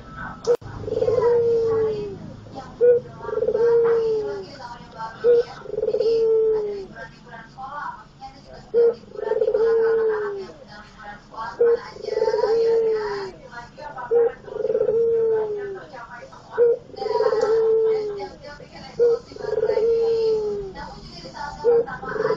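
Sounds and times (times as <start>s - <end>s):
Barbary dove cooing: 0.5s - 7.1s, 8.6s - 22.3s.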